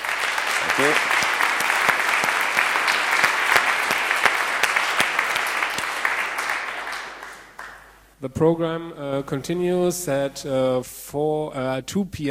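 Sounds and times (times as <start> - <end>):
crowd applauding after keynote: 0.0 - 8.0
speech: 0.8 - 1.2, 8.2 - 12.2.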